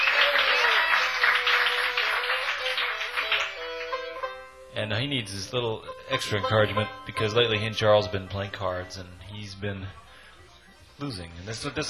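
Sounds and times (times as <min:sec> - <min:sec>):
crowd applause: 0:00.0 - 0:04.4
speech: 0:04.8 - 0:10.0, 0:11.0 - 0:11.8.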